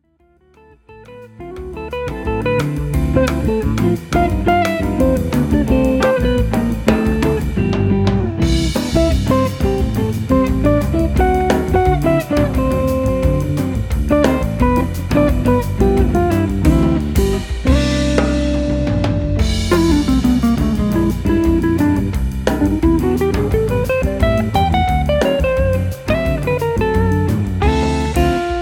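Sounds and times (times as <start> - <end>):
Latin jazz lounge music: 0.4 - 28.6.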